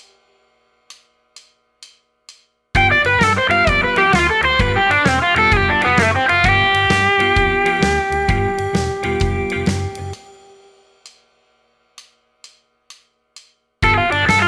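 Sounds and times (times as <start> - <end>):
guitar playing blues arpeggio triads over G7: 2.8 - 10.2, 13.8 - 14.4.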